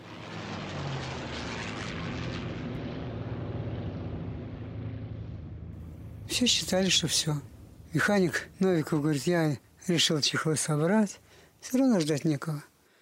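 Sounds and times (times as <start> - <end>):
propeller fighter plane engine droning: 0.0 - 9.9
speech: 6.3 - 12.7.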